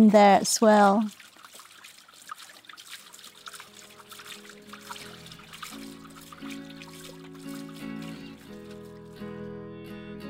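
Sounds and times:
speech: 0:00.0 - 0:01.3
water splashing and trickling over rocks: 0:00.0 - 0:09.4.

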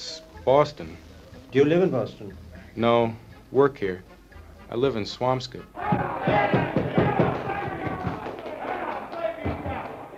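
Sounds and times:
speech: 0:00.4 - 0:04.1, 0:04.7 - 0:06.8
bar crowd shouting and cheering watching baseball on television: 0:05.7 - 0:10.1
dull thumps: 0:05.8 - 0:08.2.

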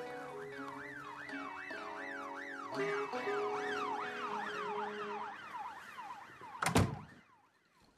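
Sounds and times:
police cars racing by: 0:00.0 - 0:06.5
police car sirens wailing: 0:00.0 - 0:07.6
sharp thump: 0:06.6 - 0:07.1.

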